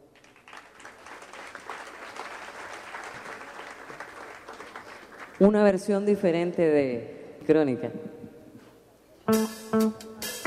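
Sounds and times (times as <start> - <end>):
audience applause: 0.1 - 5.5
speech: 5.4 - 8.1.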